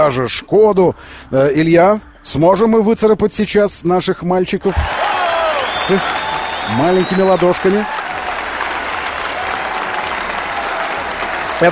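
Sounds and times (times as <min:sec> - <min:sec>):
speech: 0:00.0 - 0:05.1, 0:05.8 - 0:08.0, 0:11.6 - 0:11.7
applause: 0:04.7 - 0:11.7.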